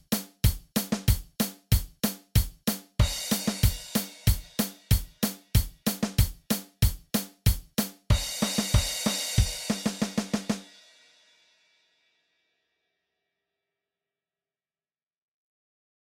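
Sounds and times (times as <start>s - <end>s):
drum kit: 0.0s - 11.2s.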